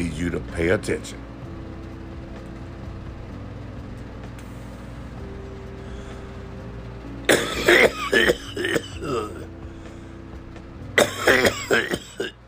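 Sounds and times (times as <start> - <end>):
speech: 0.0 - 1.3
throaty clearing: 7.3 - 9.5, 11.0 - 12.4
harsh raspy coughing: 7.3 - 9.6, 11.0 - 12.4.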